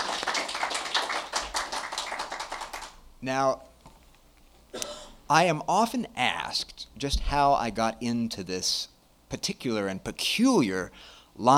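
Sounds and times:
round of applause: 0.0 - 3.0
speech: 3.2 - 3.7, 4.7 - 11.5.

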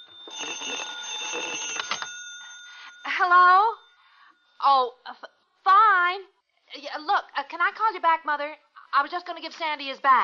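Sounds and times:
telephone ringing: 0.0 - 4.6
speech: 3.2 - 3.8, 4.6 - 10.2.

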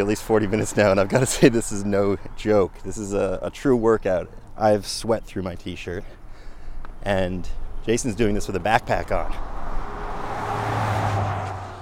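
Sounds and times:
speech: 0.0 - 6.2, 7.0 - 9.6
fast-moving cars on a road: 8.5 - 11.7.

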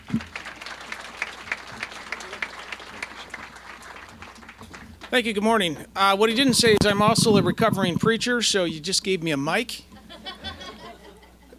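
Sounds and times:
audience applause welcoming a speaker at a talk: 0.0 - 5.1
speech: 0.1 - 0.4, 5.1 - 9.9
laughter: 10.0 - 11.5.

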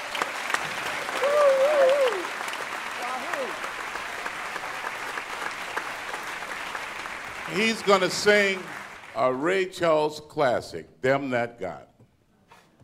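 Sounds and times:
audience applause: 0.0 - 9.7
speech: 7.6 - 11.9.

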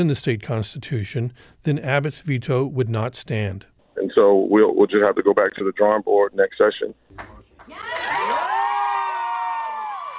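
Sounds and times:
speech: 0.0 - 8.4
crowd cheering: 7.1 - 10.1.

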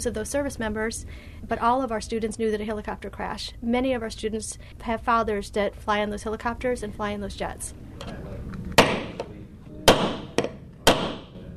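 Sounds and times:
speech: 0.0 - 8.3
hammering nails while building a mousetrap car: 8.8 - 11.4.

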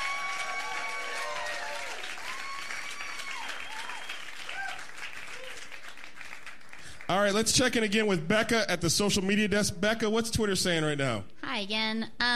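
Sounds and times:
audience cheers and whoops: 0.0 - 6.0
audience applauding guests welcomed onto a show: 0.0 - 8.0
speech: 7.1 - 12.3.

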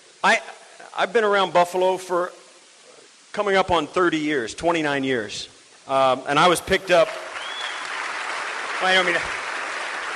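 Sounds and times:
speech: 0.2 - 2.4, 3.4 - 7.2, 8.8 - 9.4
audience clapping: 6.9 - 10.1.

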